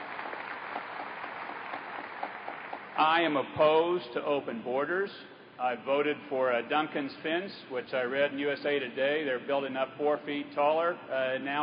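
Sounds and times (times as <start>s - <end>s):
applause: 0.0s - 3.0s
speech: 3.0s - 11.6s.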